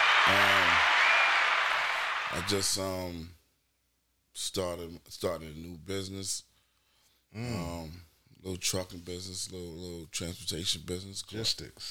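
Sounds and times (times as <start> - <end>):
hand claps sound effect: 0.0 - 2.7
speech: 0.3 - 0.5, 2.3 - 3.4, 4.4 - 6.5, 7.3 - 11.8.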